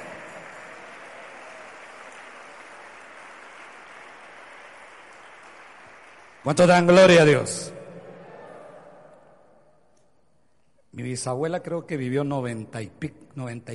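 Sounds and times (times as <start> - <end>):
audience applause: 0.0 - 7.4
speech: 6.4 - 7.8, 11.0 - 13.7.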